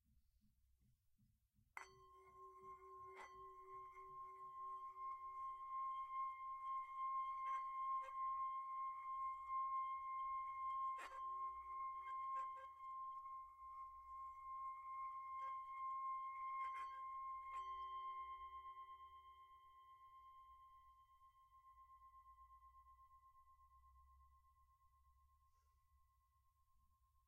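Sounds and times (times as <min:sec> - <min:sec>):
singing bowl struck with a mallet ringing: 0:01.8 - 0:22.2.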